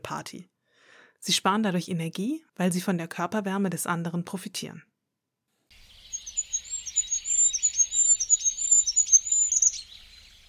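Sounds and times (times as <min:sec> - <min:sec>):
speech: 0:00.1 - 0:00.6, 0:01.2 - 0:04.9
goldcrest singing: 0:05.7 - 0:10.4.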